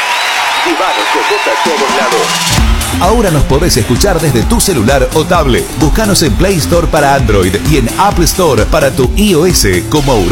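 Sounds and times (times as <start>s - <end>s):
large audience applause: 0.0s - 4.4s
speech: 0.7s - 10.3s.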